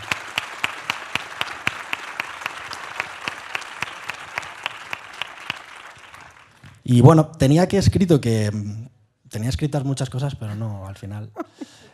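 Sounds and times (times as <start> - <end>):
audience applause: 0.0 - 6.8
speech: 6.9 - 11.8.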